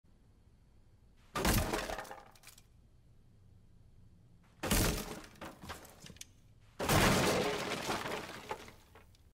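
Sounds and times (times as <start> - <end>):
door breaking: 1.4 - 2.6, 4.6 - 6.2, 6.8 - 9.1.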